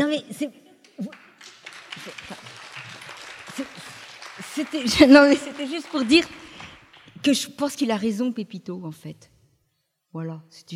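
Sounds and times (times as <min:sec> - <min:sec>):
speech: 0:00.2 - 0:01.2, 0:04.6 - 0:06.4, 0:07.2 - 0:09.3, 0:10.1 - 0:10.7
crowd applauding: 0:00.9 - 0:07.3
laughter: 0:01.4 - 0:06.8.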